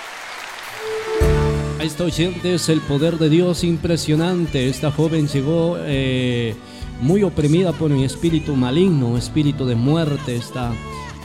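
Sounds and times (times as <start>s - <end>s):
audience applauding loudly: 0.0s - 1.8s
speech: 1.8s - 11.2s.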